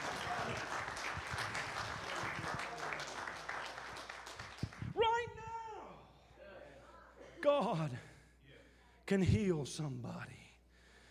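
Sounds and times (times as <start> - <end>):
audience hand clapping: 0.0 - 5.2
speech: 9.1 - 10.4.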